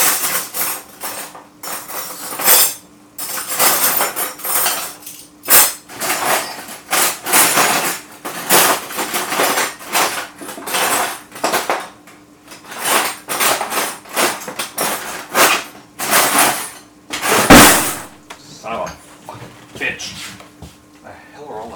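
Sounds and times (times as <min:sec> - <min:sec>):
metal cutlery clattering in a drawer while rummaging for teaspoons: 0:00.0 - 0:18.1
loud crash: 0:17.4 - 0:18.2.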